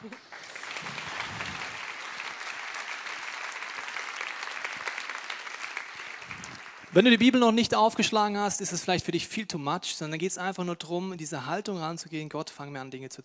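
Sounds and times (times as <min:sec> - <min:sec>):
audience applause: 0:00.0 - 0:07.4
speech: 0:06.9 - 0:13.2.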